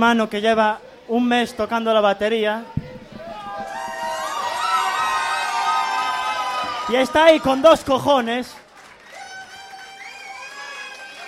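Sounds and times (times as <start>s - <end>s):
speech: 0.0s - 2.8s, 6.9s - 8.6s
audience cheering and whooping: 3.2s - 8.0s, 9.0s - 11.2s.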